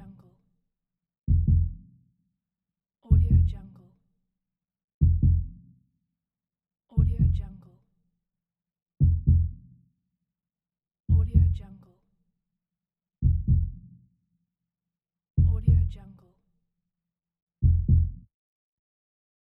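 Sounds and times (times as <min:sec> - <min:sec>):
heartbeat slowing down: 0:01.3 - 0:01.8, 0:05.0 - 0:05.5, 0:09.0 - 0:09.6, 0:11.1 - 0:11.5, 0:13.3 - 0:13.8, 0:15.4 - 0:15.8, 0:17.7 - 0:18.2.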